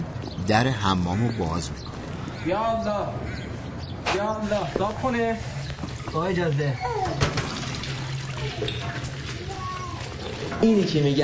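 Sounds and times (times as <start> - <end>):
speech: 0.5 - 3.4, 4.1 - 7.6, 8.4 - 9.2, 10.2 - 11.2
water splashing while washing clothes by hand in a bathroom: 5.8 - 11.2.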